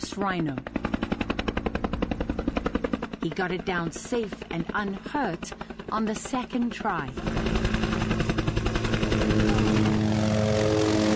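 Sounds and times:
helicopter flying overhead: 0:00.0 - 0:11.1
speech: 0:00.1 - 0:00.9, 0:03.2 - 0:07.7, 0:09.2 - 0:09.8.

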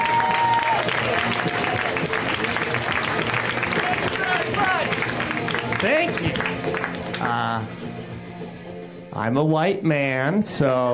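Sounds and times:
comedy show audience applause for a comedian: 0:00.0 - 0:07.5
speech: 0:09.2 - 0:10.9.

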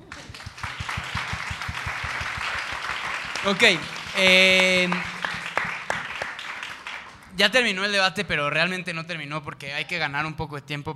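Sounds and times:
audience applause: 0:00.0 - 0:07.3
speech: 0:03.4 - 0:05.1, 0:07.4 - 0:10.9.

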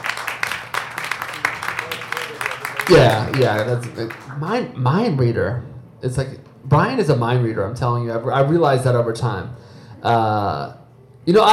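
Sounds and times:
audience applause: 0:00.0 - 0:04.5
speech: 0:02.9 - 0:11.5.

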